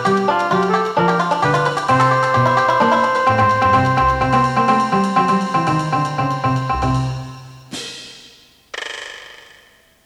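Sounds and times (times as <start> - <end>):
banjo playing: 0.0 - 7.5.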